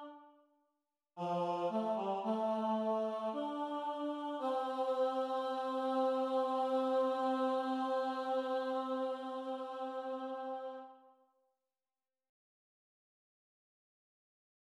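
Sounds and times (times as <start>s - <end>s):
baritone solo singing: 1.2s - 10.6s.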